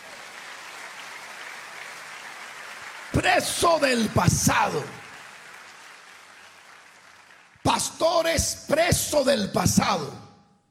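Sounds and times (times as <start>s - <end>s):
audience applause: 0.0s - 8.2s
speech: 3.1s - 5.0s, 7.7s - 10.2s.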